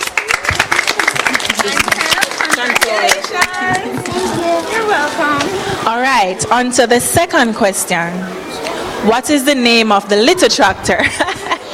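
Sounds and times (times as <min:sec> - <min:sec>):
crowd clapping: 0:00.0 - 0:04.7
speech: 0:04.4 - 0:11.4
laughter: 0:10.8 - 0:11.7.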